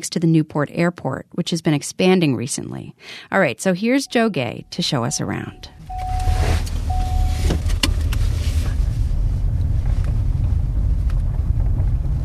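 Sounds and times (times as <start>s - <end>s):
speech: 0.0s - 5.8s
faint brief tones: 4.1s - 7.6s
car driving around a landfill perimeter beside an airport: 5.0s - 12.2s.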